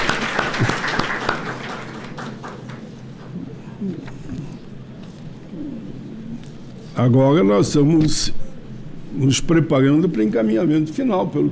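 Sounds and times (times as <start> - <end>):
audience applause: 0.0 - 3.3
speech: 7.0 - 8.4, 9.2 - 11.4.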